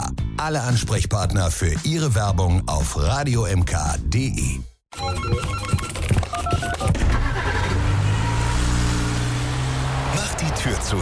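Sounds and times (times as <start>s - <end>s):
speech: 0.4s - 6.2s, 10.7s - 11.0s
convertible car accelerating: 7.0s - 11.0s.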